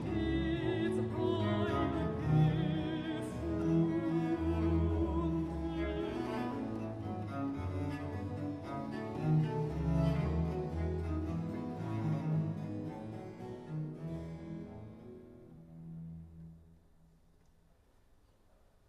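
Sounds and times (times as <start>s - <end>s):
alto vocal singing classical piece: 0.0s - 12.6s.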